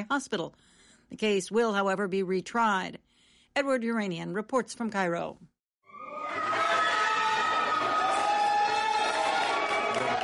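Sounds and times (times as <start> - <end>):
speech: 0.0 - 5.5
cheers and applause in a courtroom: 5.9 - 10.2.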